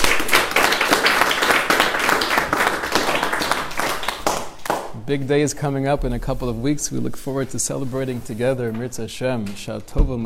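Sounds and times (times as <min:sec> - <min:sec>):
audience applause: 0:00.0 - 0:04.9
speech: 0:05.1 - 0:10.2.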